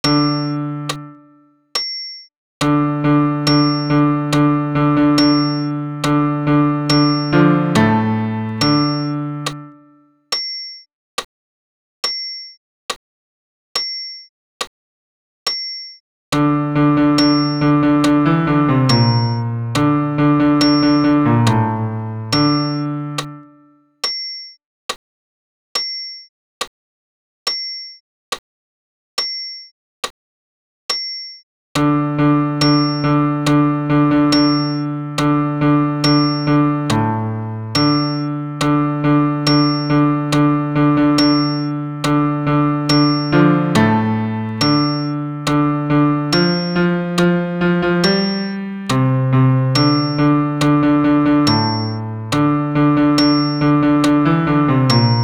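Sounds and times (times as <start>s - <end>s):
solo piano playing a sacred amen: 0.0s - 1.5s, 2.6s - 10.0s, 16.3s - 23.8s, 31.8s - 55.2s.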